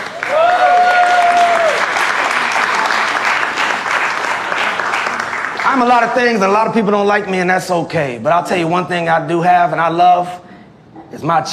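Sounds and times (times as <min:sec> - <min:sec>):
audience applause: 0:00.0 - 0:06.2
speech: 0:05.8 - 0:10.5, 0:11.1 - 0:11.5.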